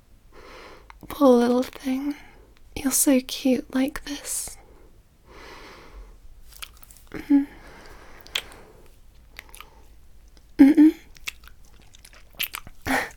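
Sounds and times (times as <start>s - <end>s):
speech: 1.0s - 4.5s, 7.1s - 7.5s
kissing sounds: 8.2s - 8.6s.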